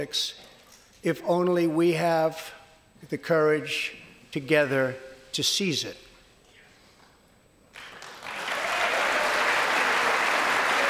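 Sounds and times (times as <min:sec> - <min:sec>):
speech: 0:00.0 - 0:06.0
applause in the chamber: 0:07.7 - 0:10.8.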